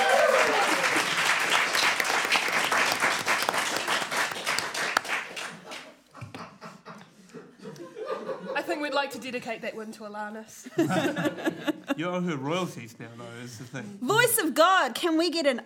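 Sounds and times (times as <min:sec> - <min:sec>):
raucous applause: 0:00.0 - 0:05.9
laughter: 0:05.5 - 0:08.8, 0:10.7 - 0:12.1
speech: 0:09.1 - 0:15.6.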